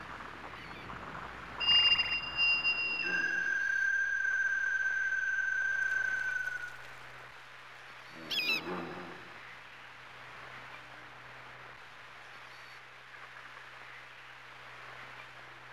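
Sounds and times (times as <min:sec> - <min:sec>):
ambience: 0:00.0 - 0:07.2.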